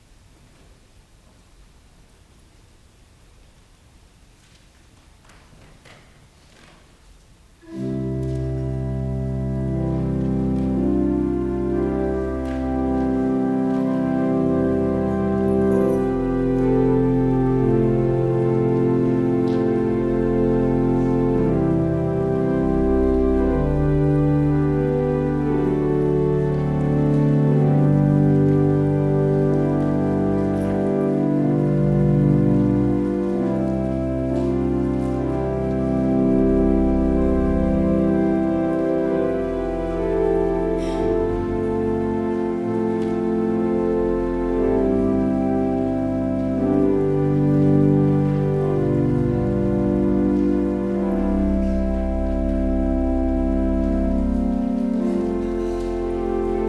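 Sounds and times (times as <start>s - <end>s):
organ music: 7.6s - 56.6s.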